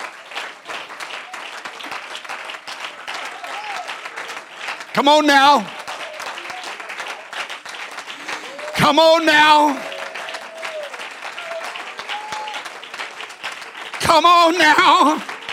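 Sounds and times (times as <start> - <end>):
audience clapping: 0.0 - 15.5
man calling out: 4.9 - 5.7, 8.5 - 10.3, 14.0 - 15.3
speech: 5.0 - 5.8, 8.8 - 9.9, 14.1 - 15.3.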